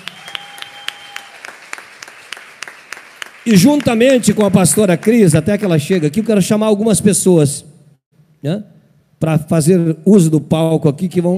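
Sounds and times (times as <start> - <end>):
audience applause: 0.0 - 6.4
speech: 3.4 - 7.7, 8.4 - 11.3.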